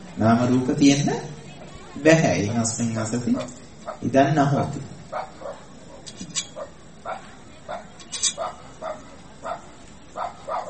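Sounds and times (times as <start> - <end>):
speech: 0.2 - 1.4, 2.0 - 5.3
dog barking: 3.4 - 4.1, 5.1 - 10.6.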